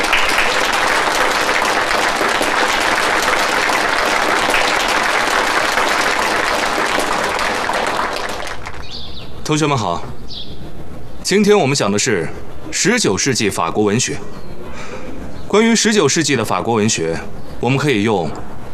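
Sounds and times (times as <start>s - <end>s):
audience applause: 0.0s - 9.0s
speech: 9.5s - 10.5s, 11.3s - 14.9s, 15.5s - 18.7s.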